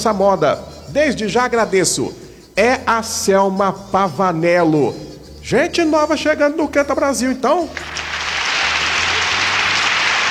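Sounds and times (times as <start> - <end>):
speech: 0.0 - 8.0
applause on a live Brazilian music show: 7.8 - 10.2.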